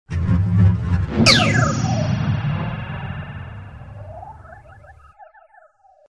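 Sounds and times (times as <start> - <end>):
lightspeed jump effect: 1.2 - 4.8.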